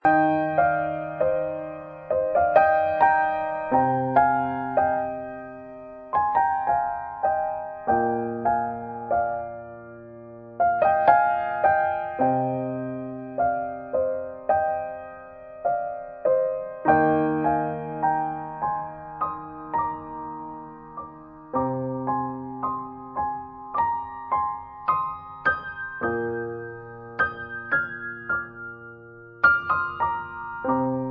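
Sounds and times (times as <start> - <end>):
romantic music: 0.0 - 31.0.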